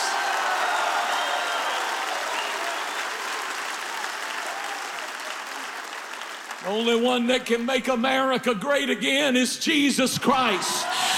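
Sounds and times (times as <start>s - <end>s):
audience clapping hands: 0.0s - 7.6s
speech: 6.6s - 11.1s.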